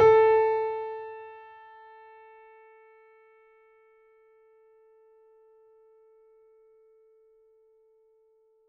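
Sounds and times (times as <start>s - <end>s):
mini grand piano: 0.0s - 1.4s.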